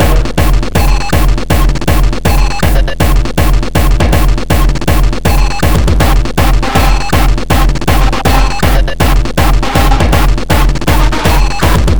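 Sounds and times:
beat loop: 0:00.0 - 0:11.9.

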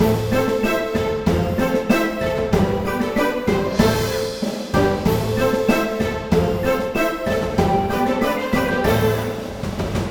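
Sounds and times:
draw lose background music: 0:00.0 - 0:10.0.

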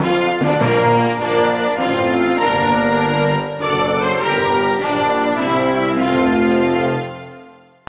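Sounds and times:
national anthem music: 0:00.0 - 0:07.8.

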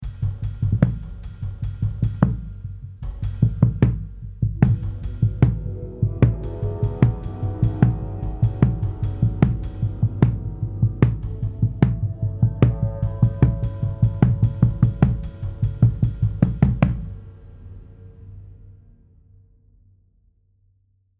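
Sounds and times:
drums: 0:00.0 - 0:19.0
metal harp hits: 0:04.6 - 0:17.1.

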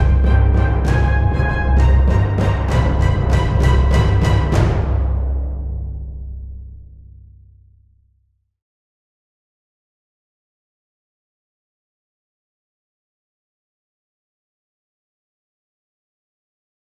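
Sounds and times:
tension music: 0:00.0 - 0:07.8.

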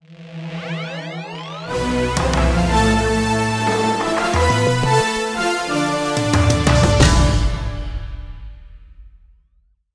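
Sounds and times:
demo jingle: 0:01.7 - 0:08.5.

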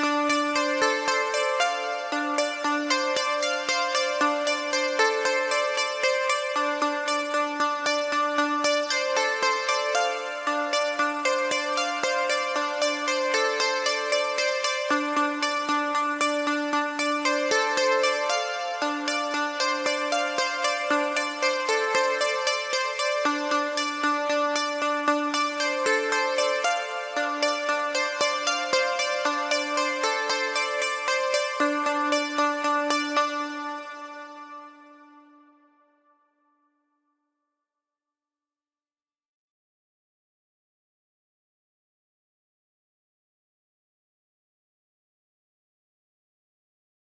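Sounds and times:
instrumental synth music: 0:00.0 - 0:35.9.

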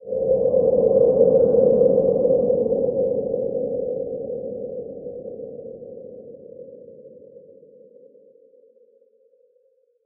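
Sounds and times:
scary ghostly wind: 0:00.0 - 0:07.4.

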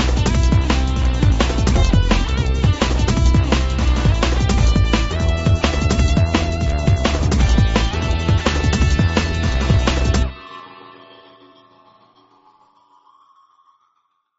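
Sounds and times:
electronic action music: 0:00.0 - 0:10.7.

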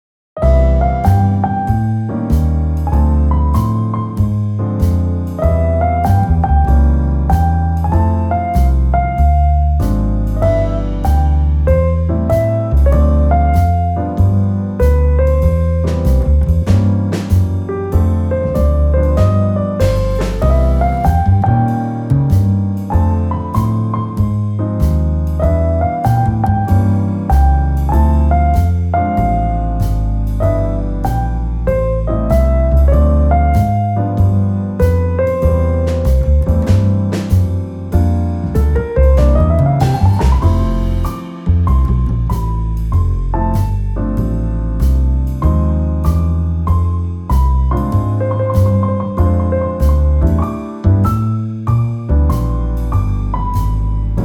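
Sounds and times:
jazz trio playing: 0:00.4 - 0:54.2.

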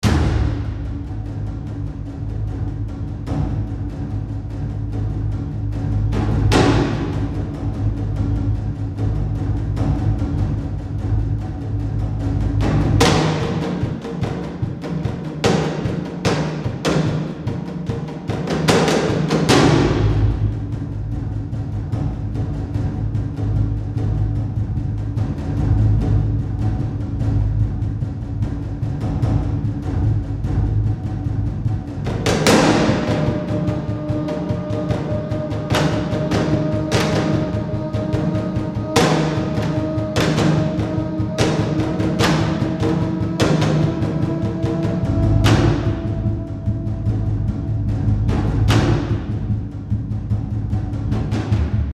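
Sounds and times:
tension percussion loop: 0:00.0 - 0:51.9.

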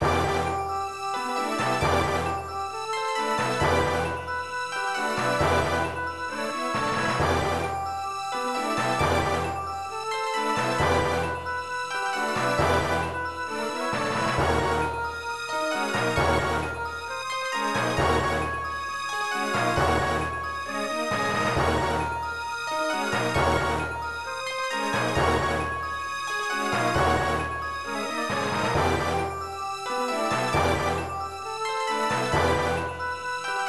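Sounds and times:
forest and cave background music: 0:00.0 - 0:33.6.

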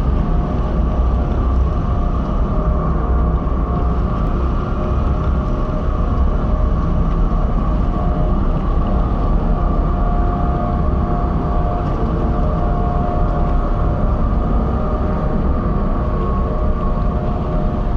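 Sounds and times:
gloomy ambient background noise: 0:00.0 - 0:17.9.

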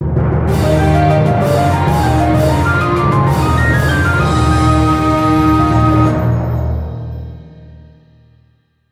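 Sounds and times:
winning jingle: 0:00.5 - 0:07.4.

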